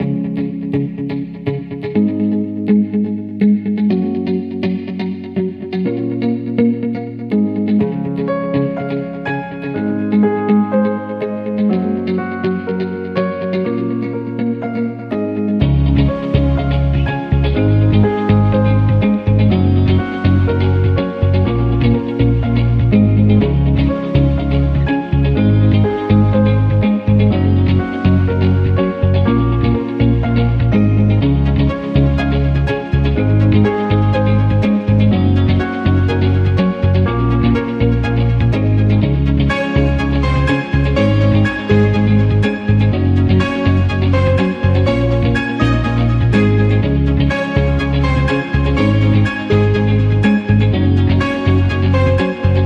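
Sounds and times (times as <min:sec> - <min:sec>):
positive team motivation music without drums: 0:00.0 - 0:52.6.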